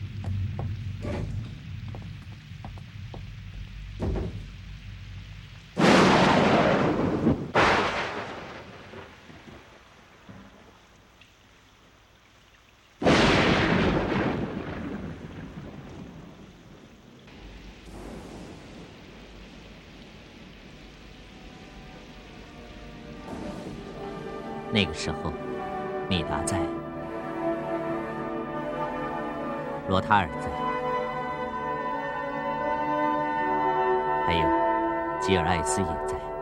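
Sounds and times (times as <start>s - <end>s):
rain: 0.0s - 36.4s
thunder: 5.8s - 10.6s, 13.0s - 21.6s, 23.2s - 24.3s
speech: 24.8s - 25.4s, 26.1s - 26.8s, 29.9s - 30.7s, 35.3s - 36.3s.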